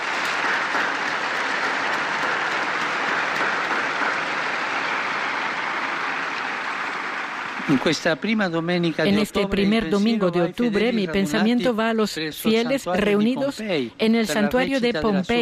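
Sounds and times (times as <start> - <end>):
applause for the new beatified women: 0.0 - 9.7
speech: 7.7 - 15.4.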